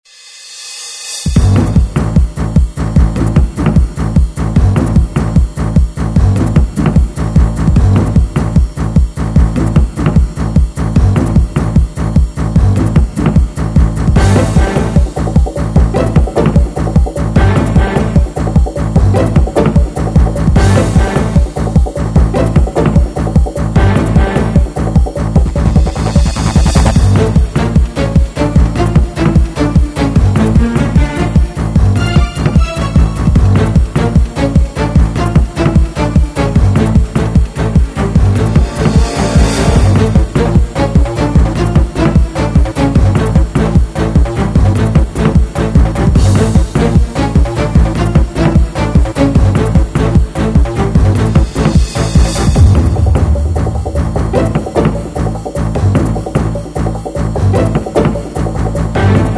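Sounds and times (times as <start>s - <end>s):
action music: 0.5s - 59.3s.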